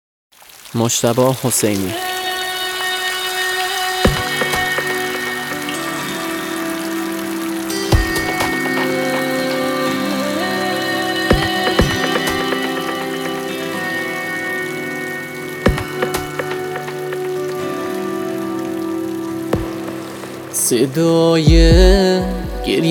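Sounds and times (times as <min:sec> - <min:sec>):
rain pattering: 0:00.3 - 0:22.8
speech: 0:00.7 - 0:02.2, 0:20.7 - 0:22.8
sustained instrumental music tones: 0:04.0 - 0:22.8
sharp knocks or drips: 0:04.1 - 0:05.4, 0:07.9 - 0:09.4, 0:11.3 - 0:13.6, 0:15.7 - 0:17.5, 0:19.6 - 0:20.2.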